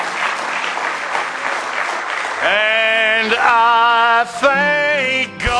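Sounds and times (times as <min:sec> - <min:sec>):
audience hand clapping: 0:00.0 - 0:04.3
speech: 0:02.4 - 0:05.4.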